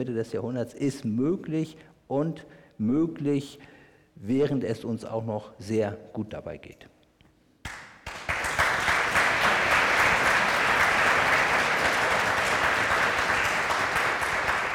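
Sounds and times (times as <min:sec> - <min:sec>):
speech: 0:00.0 - 0:07.0
audience applause: 0:07.7 - 0:14.7.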